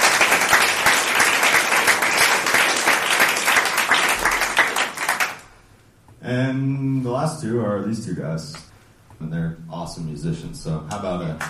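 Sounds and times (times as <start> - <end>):
audience applause: 0.0 - 5.4
speech: 6.3 - 11.4.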